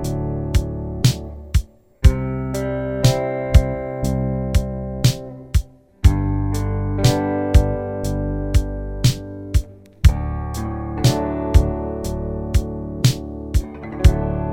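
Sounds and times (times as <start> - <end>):
bass notes D C G D: 0.0 - 14.5.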